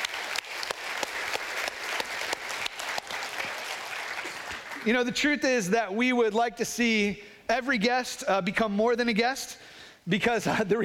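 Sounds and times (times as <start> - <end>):
church congregation clapping to welcome guests: 0.0 - 5.4
speech: 4.8 - 10.8.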